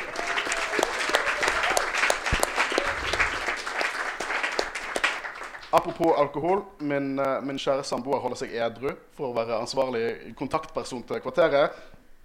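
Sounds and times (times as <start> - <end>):
audience applause: 0.0 - 6.3
speech: 5.7 - 12.0.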